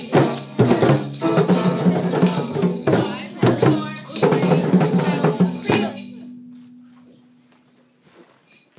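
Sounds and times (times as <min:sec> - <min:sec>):
drumming: 0:00.0 - 0:06.4.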